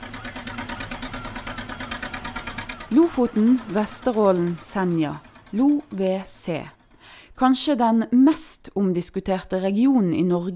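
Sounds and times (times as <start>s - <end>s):
small fishing boat engine chugging: 0.0s - 8.0s
speech: 2.9s - 6.8s, 7.4s - 10.5s.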